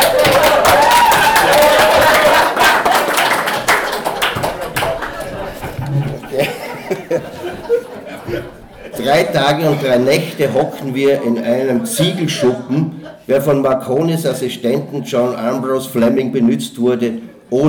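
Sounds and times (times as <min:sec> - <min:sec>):
crowd applause: 0:00.0 - 0:09.0
laughter: 0:00.0 - 0:13.7, 0:17.0 - 0:17.6
speech: 0:09.0 - 0:17.6.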